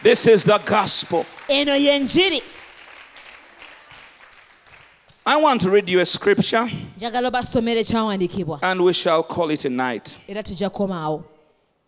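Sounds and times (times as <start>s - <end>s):
speech: 0.0s - 2.6s, 5.3s - 11.3s
audience clapping hands: 0.0s - 6.7s.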